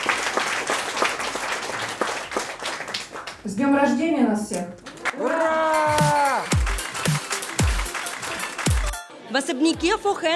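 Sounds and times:
audience applause: 0.0 - 3.5, 4.8 - 9.0
speech: 3.4 - 6.0, 9.3 - 10.3.

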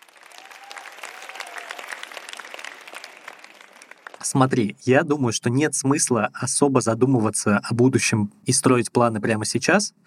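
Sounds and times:
applause: 0.0 - 4.6
speech: 4.2 - 10.0.

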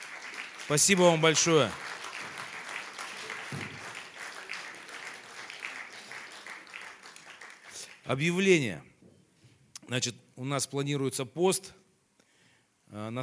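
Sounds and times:
audience applauding: 0.0 - 8.4
speech: 0.7 - 1.8, 8.1 - 8.9, 9.9 - 11.8, 12.9 - 13.2.

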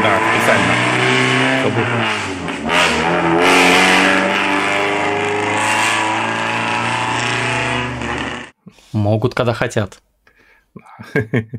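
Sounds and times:
decorated car engines revving: 0.0 - 8.6
laughter: 1.6 - 2.1, 10.8 - 11.5
speech: 1.8 - 2.5, 9.0 - 10.1, 10.8 - 11.5.

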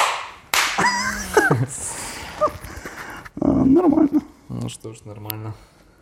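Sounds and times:
hand claps: 0.0 - 1.0
laughter: 0.8 - 2.5
speech: 1.6 - 2.7, 3.4 - 5.7.

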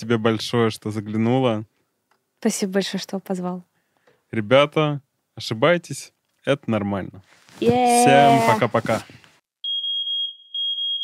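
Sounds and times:
speech: 0.0 - 1.7, 2.4 - 3.7, 4.3 - 9.2
scuffing noise: 7.3 - 9.3
fire alarm beeping: 9.6 - 11.0.

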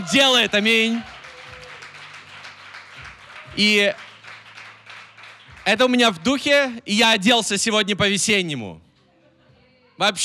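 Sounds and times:
crowd applauding: 0.0 - 6.8
speech: 0.1 - 1.1, 3.6 - 4.0, 5.6 - 8.8, 10.0 - 10.2.

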